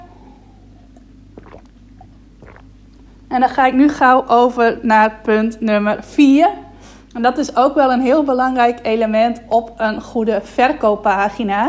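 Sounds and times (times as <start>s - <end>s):
person sipping water: 0.9s - 3.2s
speech: 3.3s - 6.6s, 7.2s - 11.6s.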